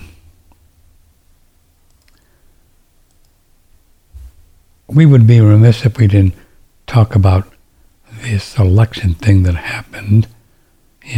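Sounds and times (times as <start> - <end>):
computer mouse clicks: 1.8 - 2.3, 3.0 - 3.4
speech: 5.0 - 7.5, 8.3 - 10.4.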